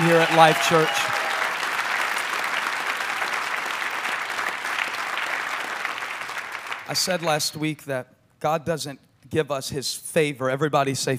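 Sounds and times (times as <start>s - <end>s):
crowd applauding: 0.0s - 7.4s
speech: 0.1s - 1.2s, 6.9s - 11.1s.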